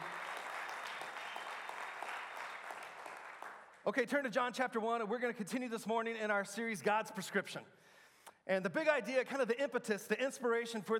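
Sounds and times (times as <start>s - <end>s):
audience round of applause: 0.0s - 3.8s
speech: 3.9s - 7.9s, 8.5s - 10.9s.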